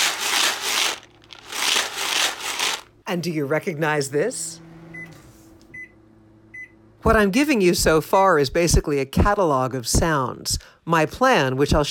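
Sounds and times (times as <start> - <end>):
big jar of popcorn kernels shaken: 0.0 - 2.9
speech: 3.1 - 4.7, 7.0 - 11.9.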